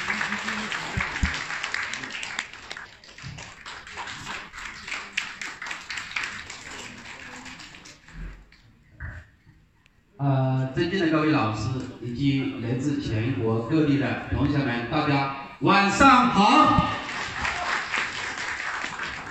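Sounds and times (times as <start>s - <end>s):
audience applause: 0.0s - 8.2s, 16.8s - 19.3s
speech: 10.2s - 16.9s.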